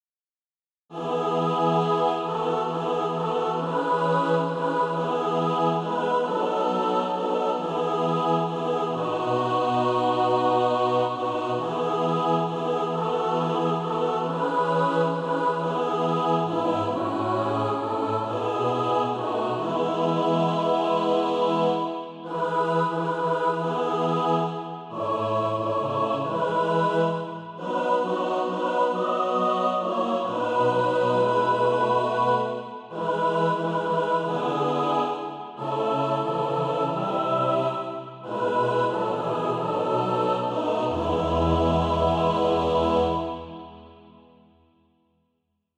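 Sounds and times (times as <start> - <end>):
mixed SATB choir practice music: 0.9 - 44.4.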